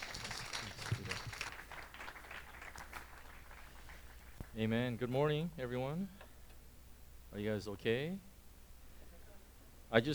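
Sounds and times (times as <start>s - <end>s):
audience applause: 0.0s - 4.5s
speech: 4.6s - 6.2s, 7.4s - 8.3s, 9.9s - 10.1s.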